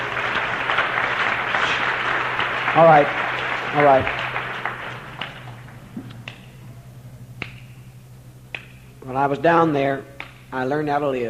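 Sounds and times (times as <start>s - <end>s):
audience clapping: 0.0s - 6.6s
speech: 2.8s - 4.2s, 9.2s - 11.2s.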